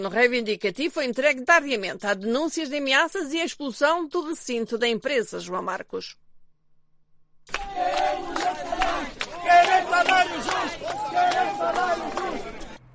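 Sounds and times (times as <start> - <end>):
speech: 0.0 - 6.2
protesters shouting and chanting at factory gate: 7.5 - 12.8.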